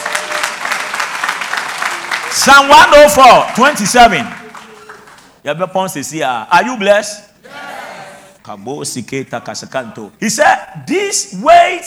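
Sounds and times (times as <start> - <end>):
audience applause: 0.0 - 5.4
speech: 2.3 - 4.4, 5.4 - 7.3, 8.4 - 11.8.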